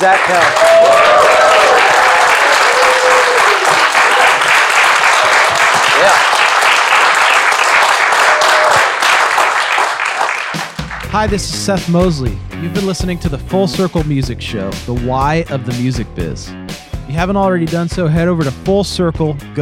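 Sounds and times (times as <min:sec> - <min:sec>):
speech: 0:00.0 - 0:00.9, 0:06.0 - 0:06.4, 0:11.1 - 0:19.6
audience round of applause: 0:00.0 - 0:11.1.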